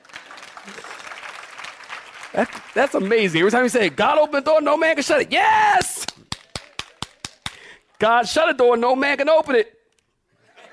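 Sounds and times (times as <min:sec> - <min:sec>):
audience clapping hands: 0:00.0 - 0:04.6, 0:05.8 - 0:07.8
speech: 0:00.7 - 0:00.9, 0:02.3 - 0:06.0, 0:08.0 - 0:09.8.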